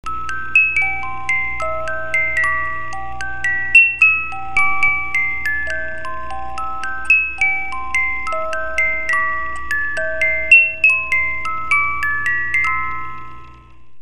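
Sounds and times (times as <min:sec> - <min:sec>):
music box melody: 0:00.0 - 0:14.0.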